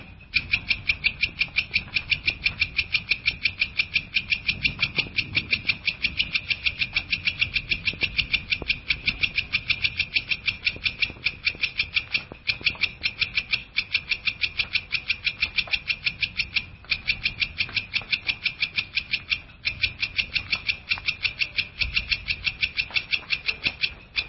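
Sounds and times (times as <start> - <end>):
long-tailed shrike song of harsh clicking notes: 0.0 - 24.2.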